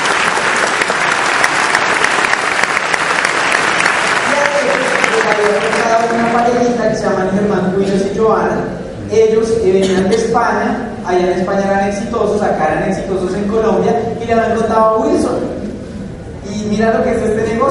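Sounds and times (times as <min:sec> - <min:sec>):
crowd applause: 0:00.0 - 0:06.8
speech: 0:05.4 - 0:15.5, 0:16.6 - 0:17.6.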